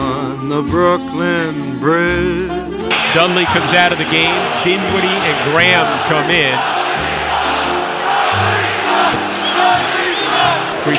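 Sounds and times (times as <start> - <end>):
speech: 0.4 - 6.8, 9.6 - 10.9
large arena crowd jeering a departing player: 2.9 - 10.9.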